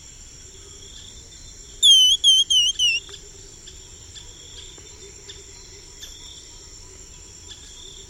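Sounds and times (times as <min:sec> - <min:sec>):
Cinnamon becard song of thin high whistled notes: 0:01.8 - 0:03.0.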